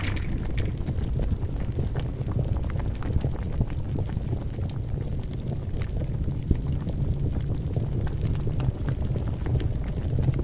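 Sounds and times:
thick steady low rumble of lava: 0:00.0 - 0:01.4
lava bubbling and crackling pops: 0:00.0 - 0:10.4.

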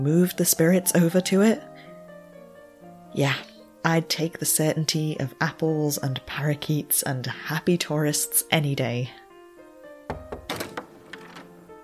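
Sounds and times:
speech: 0:00.0 - 0:01.8, 0:03.2 - 0:09.2
knocking on a door: 0:10.1 - 0:11.1.

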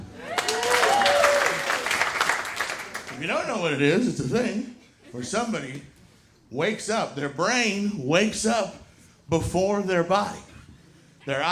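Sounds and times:
audience clapping: 0:00.0 - 0:03.3
speech: 0:03.2 - 0:05.9, 0:06.5 - 0:10.5, 0:11.2 - 0:11.5.

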